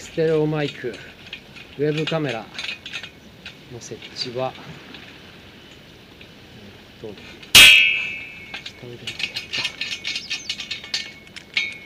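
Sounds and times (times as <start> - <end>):
scaffolding pipe metal clicking and knocking as it is shifted: 0.0 - 4.3, 7.2 - 11.8
steel scaffolding pipe clanging while being handled: 0.0 - 11.8
speech: 0.2 - 1.2, 1.8 - 2.6, 3.7 - 4.9, 7.0 - 7.4, 8.8 - 9.2.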